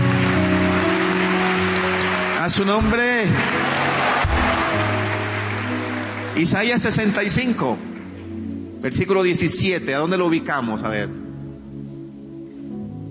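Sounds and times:
audience applause: 0.0s - 7.5s
speech: 2.5s - 3.7s, 6.4s - 7.9s, 8.8s - 11.2s.

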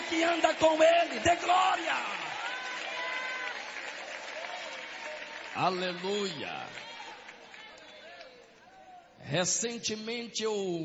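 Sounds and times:
audience applauding: 0.0s - 8.3s
speech: 0.1s - 2.3s, 5.6s - 6.9s, 9.2s - 10.8s.

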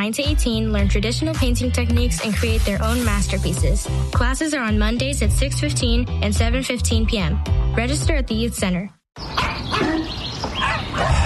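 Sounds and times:
speech: 0.0s - 10.0s
dog barking: 9.3s - 11.2s.

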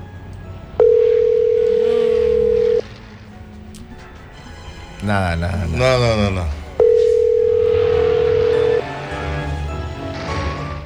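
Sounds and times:
telephone ringing tone, unanswered call: 0.7s - 2.9s, 6.7s - 9.4s
speech: 5.0s - 6.6s.

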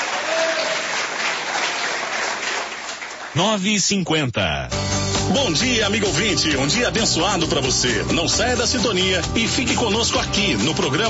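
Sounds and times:
audience clapping: 0.0s - 3.7s
speech: 3.4s - 11.0s.

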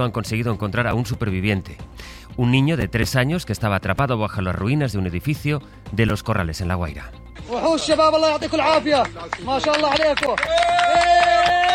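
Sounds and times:
speech: 0.0s - 11.7s
applause at rescue: 8.5s - 11.7s
cheering at rescue: 9.0s - 11.7s.

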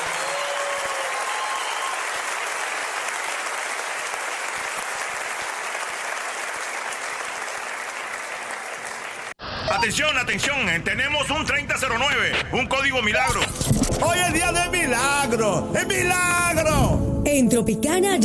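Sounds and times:
audience applause: 0.0s - 9.4s
speech: 9.8s - 18.2s.

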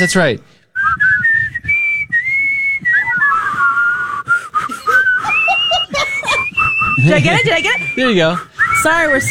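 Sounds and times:
speech: 0.0s - 1.0s, 7.0s - 9.3s
person whistling a song melody: 0.8s - 9.3s
person chuckling: 4.6s - 8.0s.

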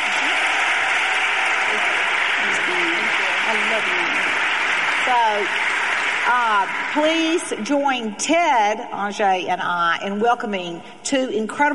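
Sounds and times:
applause for a guest: 0.0s - 8.0s
speech: 5.1s - 5.6s, 6.3s - 11.7s.

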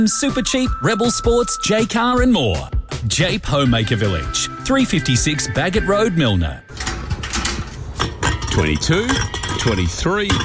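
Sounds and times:
speech: 0.0s - 6.8s, 8.6s - 10.4s
empty beer cans clinking and rattling: 6.9s - 10.4s.

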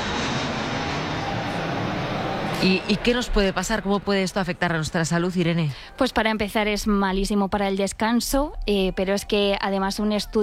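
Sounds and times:
airplane engine roar at Madrid-Barajas airport: 0.0s - 6.1s
speech: 2.6s - 10.4s.

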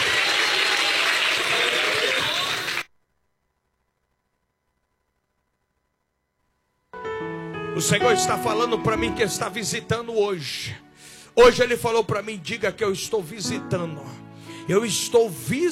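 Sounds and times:
church congregation clapping: 0.0s - 2.9s
speech: 7.8s - 15.7s.

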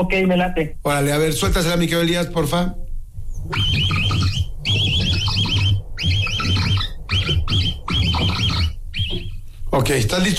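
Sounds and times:
speech: 0.0s - 2.8s, 3.4s - 4.8s, 9.7s - 10.3s
capybara call: 3.4s - 9.5s.

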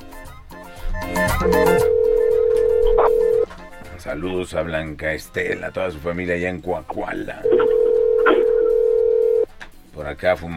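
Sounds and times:
music: 0.0s - 10.5s
telephone ringing tone on an outgoing call: 1.3s - 3.4s, 7.4s - 9.5s
speech: 1.4s - 1.9s, 4.0s - 7.9s, 10.0s - 10.5s.

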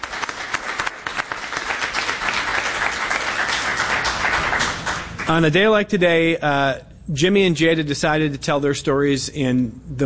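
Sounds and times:
audience applause: 0.0s - 5.4s
speech: 5.3s - 10.0s.

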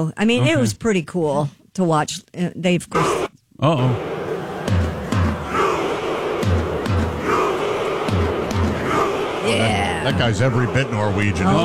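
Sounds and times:
speech: 0.0s - 4.1s, 10.0s - 11.6s
stadium crowd chanting in unison: 3.0s - 11.6s
deep booming drum beats: 3.8s - 11.0s.

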